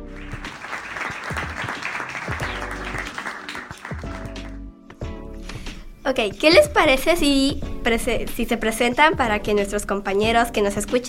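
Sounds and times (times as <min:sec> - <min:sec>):
audience applause: 0:00.0 - 0:04.6
speech: 0:06.1 - 0:11.0.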